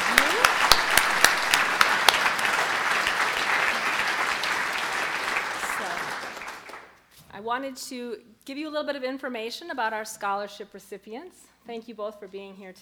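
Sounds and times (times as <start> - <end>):
audience applause: 0.0 - 6.9
speech: 7.5 - 12.7.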